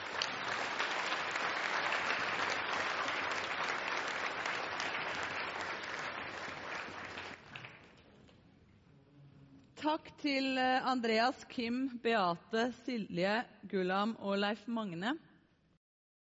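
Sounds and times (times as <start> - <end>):
audience applause for a panel: 0.0 - 7.9
speech: 9.8 - 15.3.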